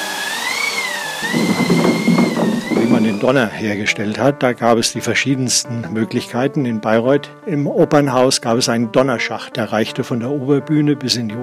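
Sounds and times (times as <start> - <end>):
theatre wind machine, canvas over rotating wooden cylinder: 1.2 - 3.5
speech: 3.1 - 11.4.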